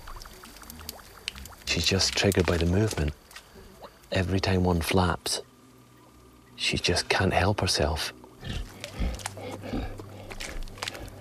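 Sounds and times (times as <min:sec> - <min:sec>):
big cat eating a catfish: 0:00.0 - 0:04.1, 0:08.2 - 0:11.1
speech: 0:01.8 - 0:03.2, 0:04.1 - 0:05.5, 0:06.6 - 0:08.7.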